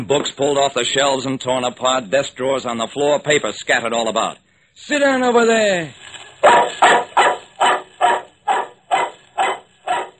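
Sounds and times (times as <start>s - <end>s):
speech: 0.0s - 7.0s
dog barking: 6.4s - 10.1s.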